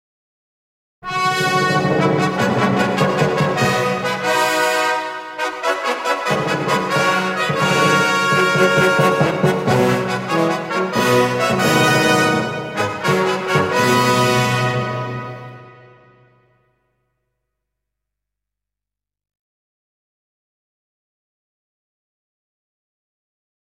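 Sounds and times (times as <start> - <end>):
short fanfare: 1.0 - 16.4.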